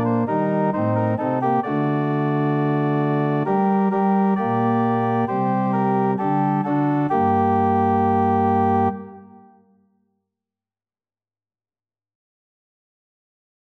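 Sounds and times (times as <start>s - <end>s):
organ music: 0.0s - 9.6s.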